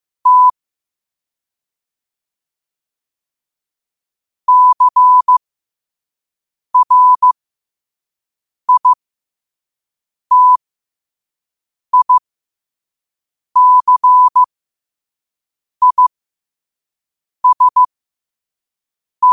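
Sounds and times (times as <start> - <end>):
morse code at 5 wpm: 0.2 - 0.5, 4.5 - 5.4, 6.8 - 7.4, 8.7 - 9.0, 10.3 - 10.6, 12.0 - 12.2, 13.6 - 14.5, 15.8 - 16.1, 17.4 - 17.9.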